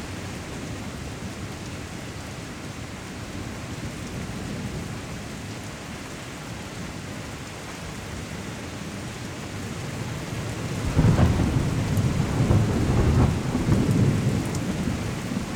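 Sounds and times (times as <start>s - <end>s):
rain: 0.0s - 15.5s
thunderstorm: 10.2s - 15.5s.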